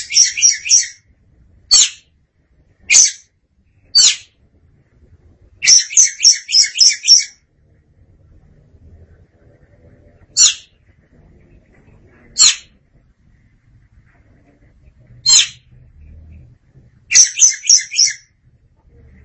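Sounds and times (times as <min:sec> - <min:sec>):
Oriental magpie-robin song: 0:00.0 - 0:01.1, 0:01.7 - 0:02.1, 0:02.8 - 0:04.4, 0:05.6 - 0:07.4, 0:10.2 - 0:12.8, 0:15.2 - 0:16.4, 0:17.1 - 0:18.4.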